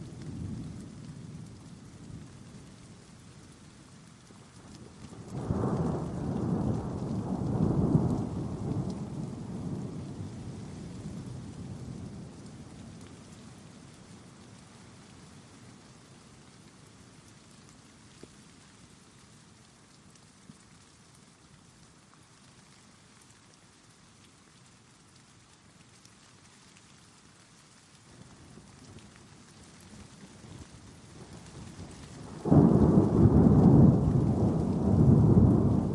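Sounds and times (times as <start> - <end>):
steady rain hissing in a thunderstorm: 0.0 - 35.9
thunder rolls: 5.2 - 12.6, 32.1 - 35.9
loud thunder crack: 32.4 - 35.9.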